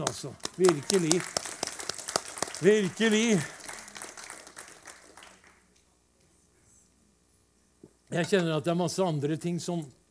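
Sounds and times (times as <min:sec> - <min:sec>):
audience applause: 0:00.0 - 0:05.6
speech: 0:00.1 - 0:01.5, 0:02.6 - 0:03.6, 0:08.1 - 0:10.0.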